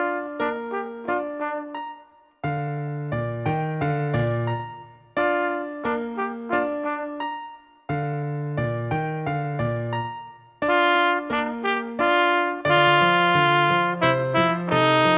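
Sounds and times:
solo trumpet: 0:00.0 - 0:02.0, 0:05.2 - 0:07.3, 0:10.6 - 0:15.1
piano accompaniment: 0:00.0 - 0:15.1.

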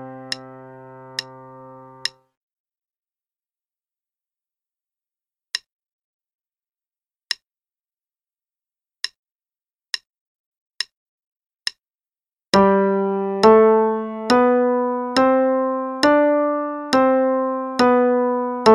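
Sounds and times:
five finger pattern exercise in C and G: 0:00.0 - 0:02.2, 0:12.6 - 0:18.7.

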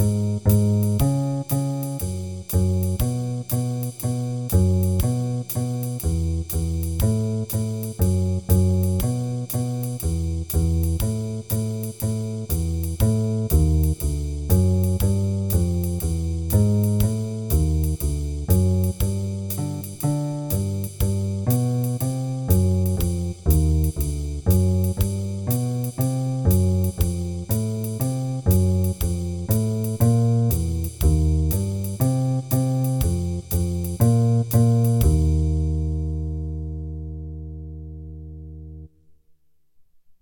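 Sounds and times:
jazz backing track with ii-V-I chord progressions: 0:00.0 - 0:38.9.

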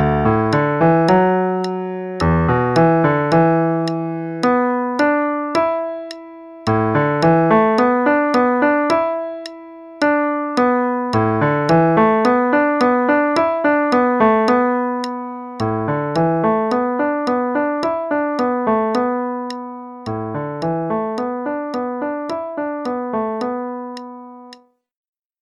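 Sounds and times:
improvised music: 0:00.0 - 0:24.7.

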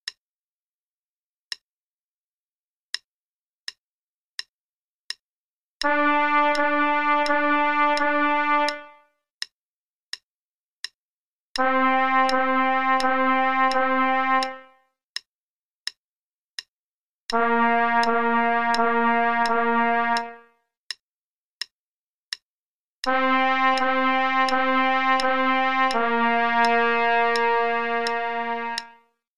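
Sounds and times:
trumpet play-along: 0:05.8 - 0:09.0, 0:11.6 - 0:14.7, 0:17.3 - 0:20.5, 0:23.1 - 0:29.0.

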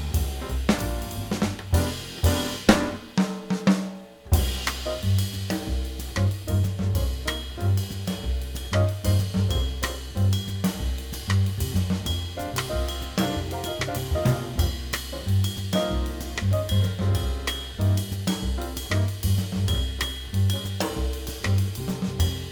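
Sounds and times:
rhythm: 0:00.0 - 0:22.4.

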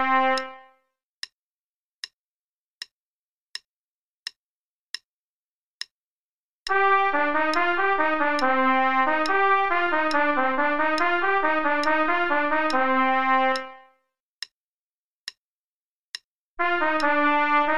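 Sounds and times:
trumpet play-along part: 0:00.0 - 0:00.7, 0:06.7 - 0:13.9, 0:16.6 - 0:17.7.

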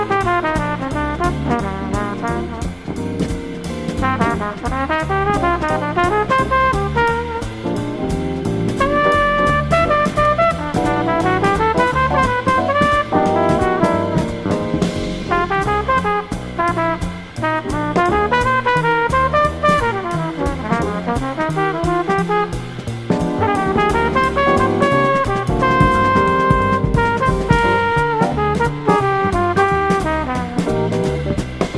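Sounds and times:
jazz trumpet solo: 0:00.0 - 0:31.7.

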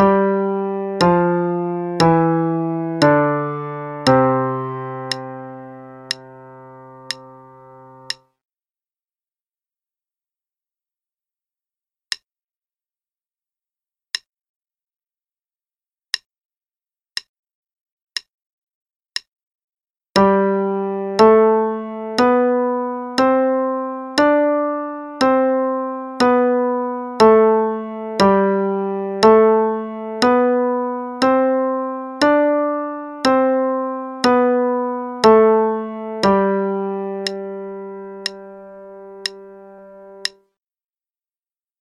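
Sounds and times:
5 finger pattern exercise in C and G: 0:00.0 - 0:08.4, 0:20.2 - 0:40.5.

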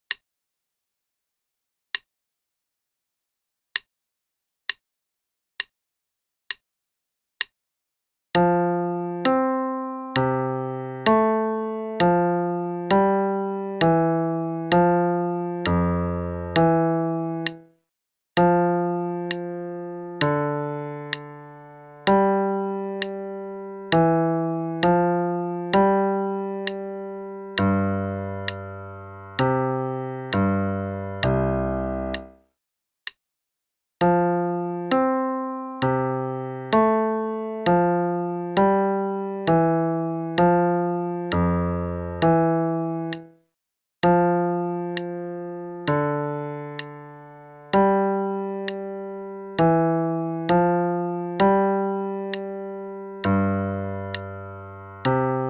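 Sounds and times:
left hand only play-along part: 0:08.3 - 0:17.7, 0:18.4 - 0:32.4, 0:34.0 - 0:43.4, 0:44.0 - 0:55.4.

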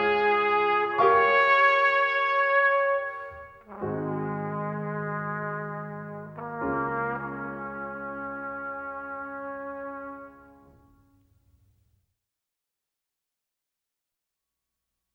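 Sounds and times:
trumpet performance: 0:00.0 - 0:11.1.

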